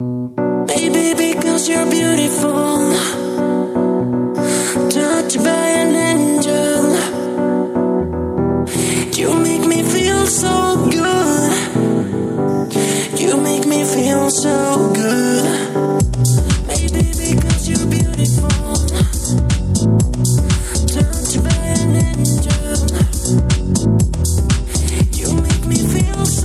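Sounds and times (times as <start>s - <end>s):
chill disco music: 0.0s - 26.4s.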